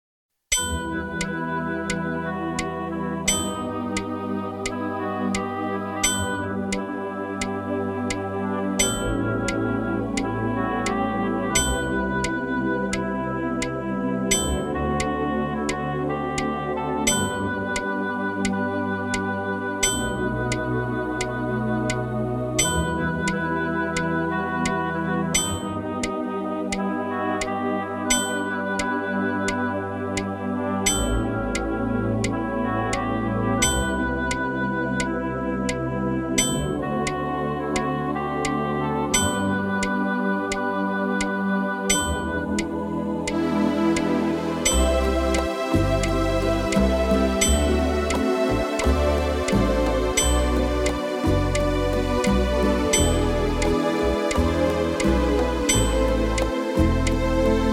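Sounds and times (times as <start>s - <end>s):
metronome ticking: 0.5s - 30.3s, 30.9s - 57.7s.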